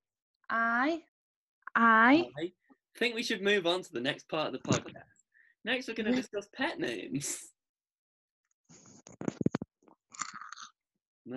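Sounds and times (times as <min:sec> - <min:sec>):
speech: 0:00.5 - 0:01.1, 0:01.8 - 0:07.5
person chewing and crunching a Kinder Happy Hippo snack: 0:10.2 - 0:10.7.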